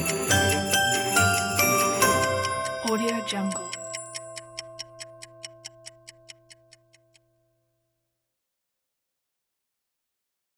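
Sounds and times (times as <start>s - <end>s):
Christmas song: 0.0s - 5.4s.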